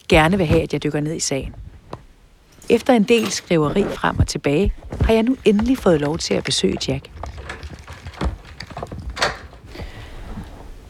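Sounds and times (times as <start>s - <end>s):
speech: 0.1s - 1.7s, 2.7s - 7.6s
door being locked: 7.0s - 9.6s.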